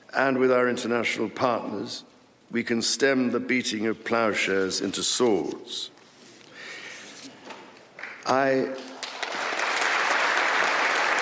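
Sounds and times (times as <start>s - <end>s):
speech: 0.1s - 6.0s, 8.2s - 8.9s
polite golf-clap applause: 8.0s - 11.1s.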